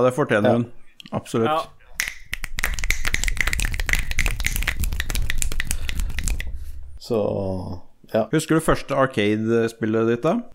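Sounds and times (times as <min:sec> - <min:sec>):
speech: 0:00.0 - 0:01.8, 0:07.1 - 0:10.5
group finger snapping: 0:02.0 - 0:06.6.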